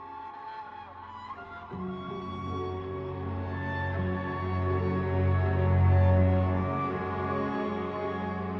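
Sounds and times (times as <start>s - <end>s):
theme music: 1.9s - 8.5s.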